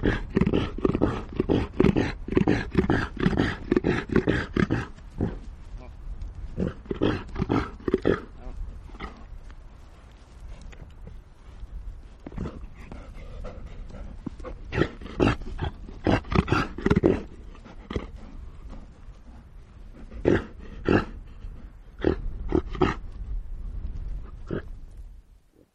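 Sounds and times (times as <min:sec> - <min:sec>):
reindeer roaring: 0:00.0 - 0:05.5, 0:06.5 - 0:09.4, 0:12.3 - 0:23.2, 0:24.1 - 0:24.8.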